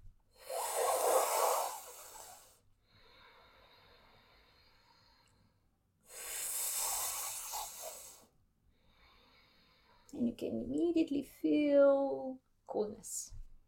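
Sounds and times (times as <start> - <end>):
sipping inhales through the mouth: 0.4 - 2.6, 6.1 - 8.3
speech: 10.3 - 13.4.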